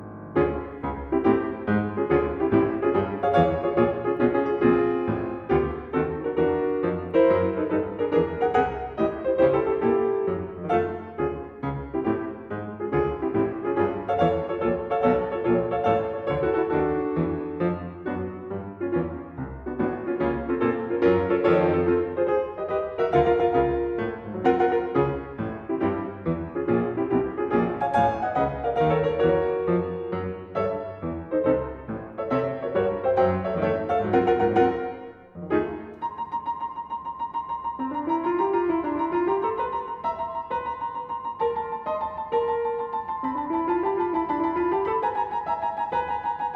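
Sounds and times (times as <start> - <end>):
burlesque piano sonatina march: 0.0 - 46.5.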